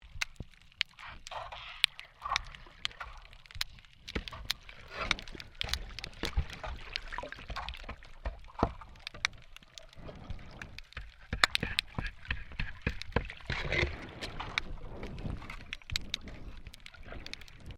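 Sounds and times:
shovel scraping underwater during maintenance work: 0.5 - 17.7.

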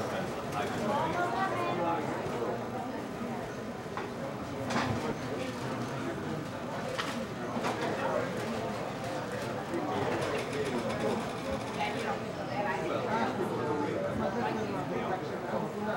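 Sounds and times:
people chattering in a cafe coffee shop: 0.0 - 15.9.

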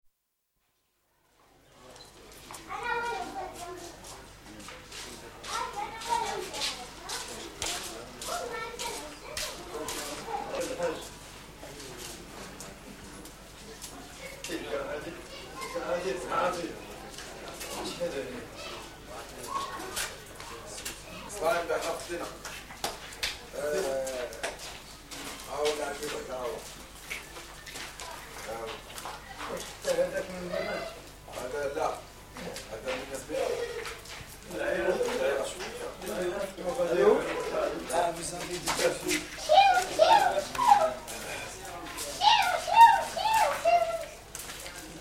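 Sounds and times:
street atmosphere in Meknes Morocco: 1.5 - 45.0
echoey footsteps: 2.3 - 14.6, 19.8 - 29.8, 37.1 - 45.0.

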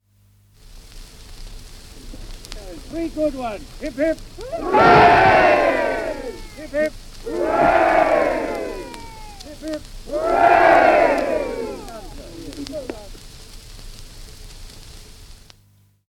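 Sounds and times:
small crowd shouting a cheer: 4.4 - 13.0.

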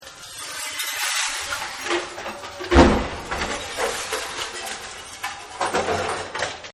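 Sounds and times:
slicing through glass: 0.0 - 5.8.

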